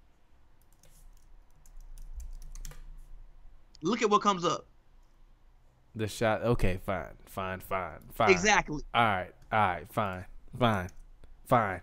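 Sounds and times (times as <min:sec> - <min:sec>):
typing on a computer keyboard: 0:00.6 - 0:03.1
speech: 0:03.8 - 0:04.7, 0:06.0 - 0:11.8.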